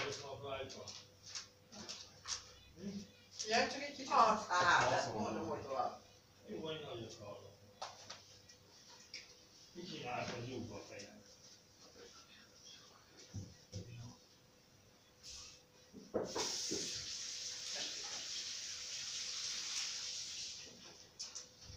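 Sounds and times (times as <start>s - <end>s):
speech: 0.1s - 1.1s, 2.8s - 7.6s, 9.8s - 11.3s
water running while something is washed: 16.2s - 21.1s.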